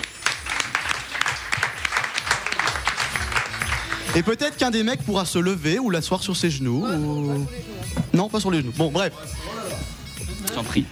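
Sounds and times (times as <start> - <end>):
audience applause: 0.0 - 4.4
speech: 4.2 - 9.8, 10.5 - 10.8.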